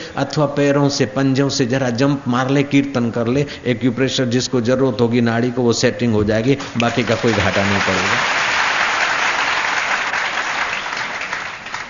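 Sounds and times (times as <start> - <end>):
speech: 0.2 - 8.5
audience clapping hands during devotional session: 6.6 - 11.8.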